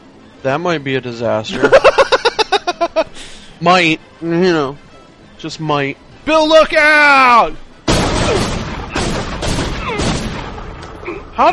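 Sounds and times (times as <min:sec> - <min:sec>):
speech: 0:00.4 - 0:02.0, 0:02.8 - 0:04.8, 0:05.4 - 0:07.6, 0:11.4 - 0:11.5
laughter: 0:01.5 - 0:03.1
shotgun blasts in a mall in the Dead Rising video game demo: 0:07.8 - 0:10.9
loud dense continuous din: 0:07.8 - 0:11.5.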